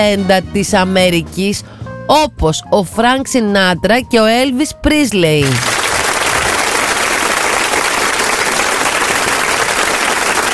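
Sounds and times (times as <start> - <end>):
speech: 0.0 - 5.8
audience applause: 5.4 - 10.5.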